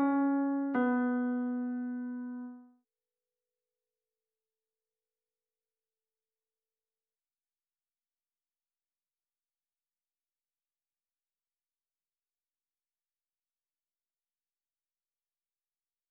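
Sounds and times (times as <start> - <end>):
140 BPM B minor trap piano melody: 0.0 - 2.6.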